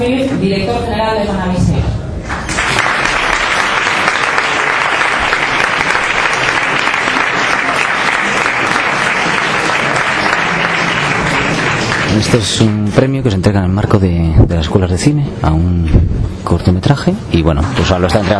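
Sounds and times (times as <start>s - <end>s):
speech: 0.0s - 1.6s, 12.2s - 18.3s
audience applause: 2.3s - 12.8s.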